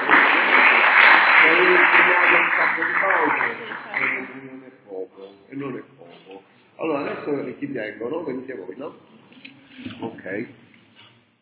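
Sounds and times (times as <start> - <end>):
audience applause: 0.0 - 4.4
speech: 7.4 - 10.6.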